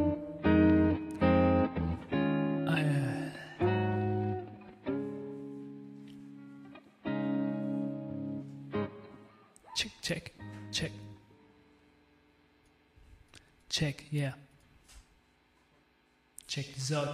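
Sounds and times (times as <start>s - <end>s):
buzzy held harmonic notes through a cheap reverb effect: 0.0s - 12.3s
speech: 10.0s - 11.0s, 13.8s - 14.4s, 16.5s - 17.1s.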